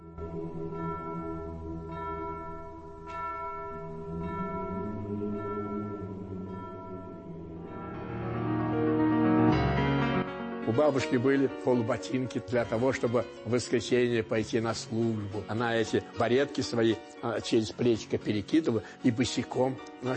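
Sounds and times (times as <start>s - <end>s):
large church bell tolling: 0.0s - 11.2s
speech: 10.8s - 20.1s.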